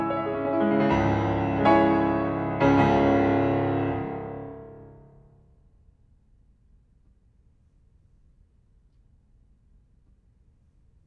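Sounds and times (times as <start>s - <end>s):
piano etude in C sharp minor: 0.0s - 5.4s.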